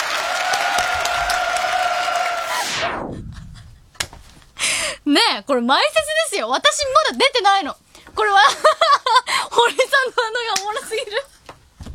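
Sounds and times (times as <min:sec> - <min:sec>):
audience practising applause during a warm-up before a show: 0:00.0 - 0:02.7
sharp downward-sweeping effect: 0:01.1 - 0:04.0
speech: 0:05.2 - 0:09.0, 0:09.6 - 0:11.3.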